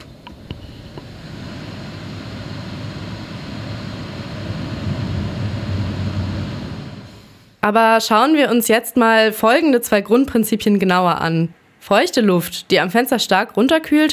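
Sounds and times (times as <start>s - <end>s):
ventilation system running: 0.0s - 7.5s
speech: 7.6s - 14.1s.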